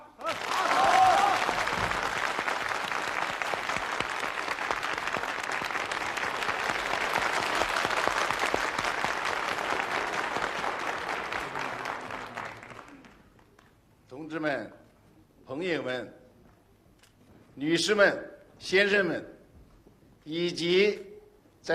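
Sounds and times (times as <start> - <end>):
warm audience applause: 0.0 - 13.7
speech: 15.8 - 16.2, 17.6 - 19.3, 20.3 - 21.0.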